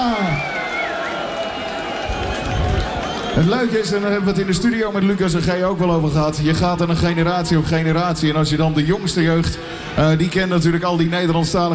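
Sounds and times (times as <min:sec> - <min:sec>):
shrill whistles: 0:00.0 - 0:03.6
raised voices cheering: 0:00.0 - 0:04.2
crowd applauding: 0:00.0 - 0:04.7
speech: 0:03.4 - 0:11.7.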